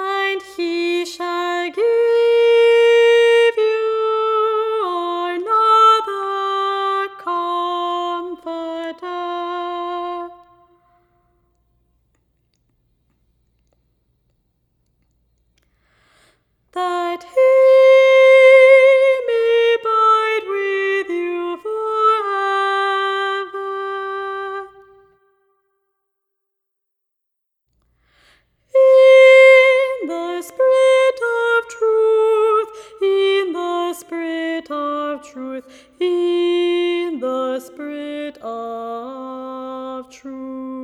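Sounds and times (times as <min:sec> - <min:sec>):
soprano singing: 0:00.0 - 0:11.0, 0:16.7 - 0:25.2, 0:28.7 - 0:40.8.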